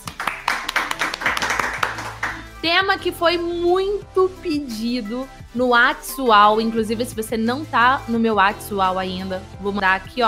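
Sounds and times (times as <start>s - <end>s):
clapping: 0.0s - 2.5s
speech: 2.6s - 10.2s.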